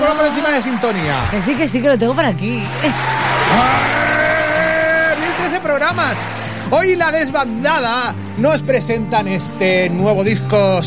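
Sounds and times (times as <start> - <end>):
applause sound effect: 0.0 - 1.8, 2.6 - 7.9
speech: 0.5 - 4.0, 5.6 - 10.8.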